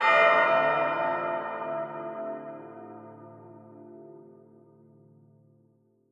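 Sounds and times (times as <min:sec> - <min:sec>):
bell: 0:00.0 - 0:04.9.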